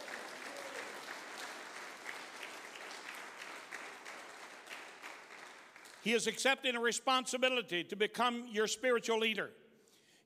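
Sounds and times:
audience applauding: 0.0 - 6.2
speech: 6.0 - 9.6.

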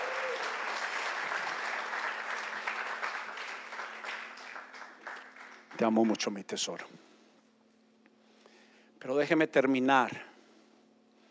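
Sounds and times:
audience applause: 0.0 - 6.4
speech: 5.8 - 7.1, 9.0 - 10.3.

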